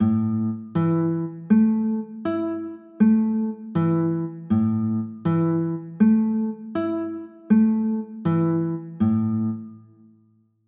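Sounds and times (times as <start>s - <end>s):
chords: 0.0s - 10.0s.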